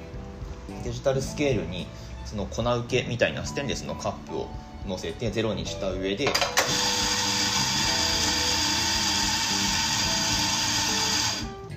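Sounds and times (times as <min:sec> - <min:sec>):
speech: 0:00.8 - 0:06.9
electric coffee grinder grinding beans: 0:06.3 - 0:11.6.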